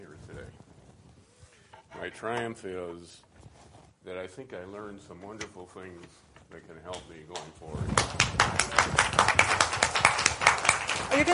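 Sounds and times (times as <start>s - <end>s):
speech: 2.0s - 3.3s, 4.0s - 9.6s, 11.0s - 11.3s
small group clapping in a circle: 6.9s - 11.3s.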